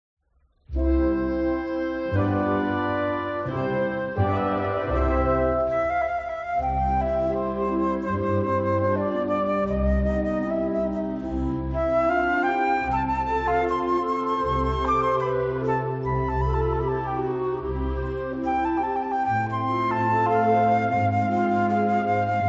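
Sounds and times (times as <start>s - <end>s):
andante for flute and wind band: 0.8s - 22.4s.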